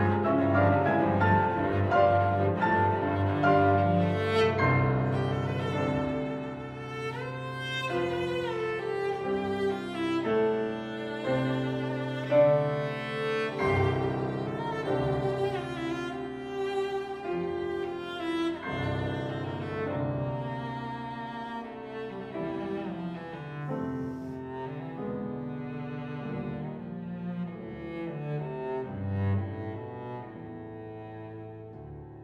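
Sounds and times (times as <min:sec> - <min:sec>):
cello: 0:00.0 - 0:32.2
piano: 0:00.0 - 0:32.2.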